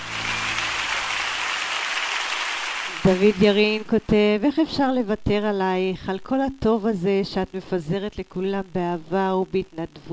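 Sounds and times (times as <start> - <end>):
crowd applause: 0.0 - 3.6
speech: 3.0 - 10.1.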